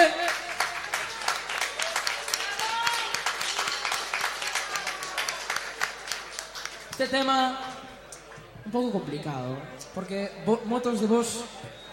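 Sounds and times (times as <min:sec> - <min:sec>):
audience applause: 0:00.0 - 0:07.0
speech: 0:07.0 - 0:07.7, 0:08.7 - 0:11.8.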